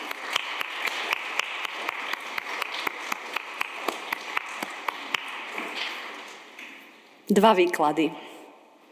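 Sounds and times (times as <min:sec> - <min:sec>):
audience clapping with whole hands: 0:00.0 - 0:06.6
speech: 0:07.3 - 0:08.3.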